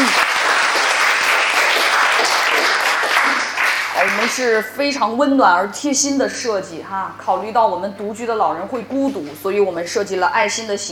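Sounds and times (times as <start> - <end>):
audience applause: 0.0 - 4.6
speech: 4.3 - 10.9.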